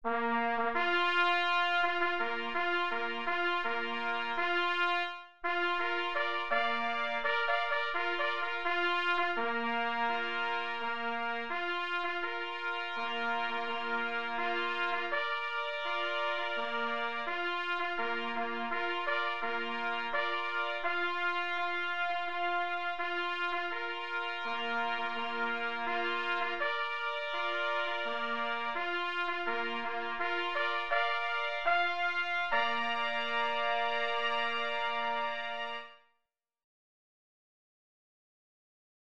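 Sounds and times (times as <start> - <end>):
bugle call played on matching instruments: 0.1 - 35.8.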